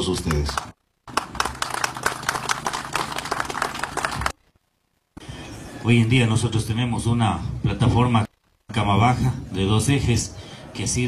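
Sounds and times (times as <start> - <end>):
speech: 0.0 - 0.7, 5.8 - 11.0
audience applause: 0.2 - 4.4.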